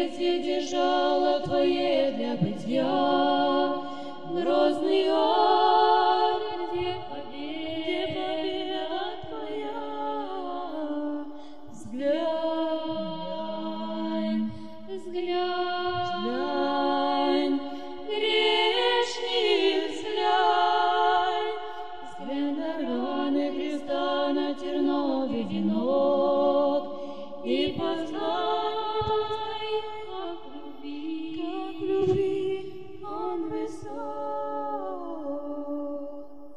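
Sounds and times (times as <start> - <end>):
spiritual chant singing: 0.0 - 36.5.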